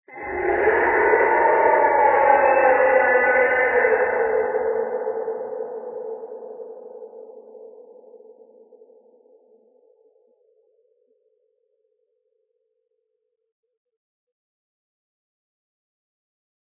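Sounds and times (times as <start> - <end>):
forest scream: 0.1 - 5.6.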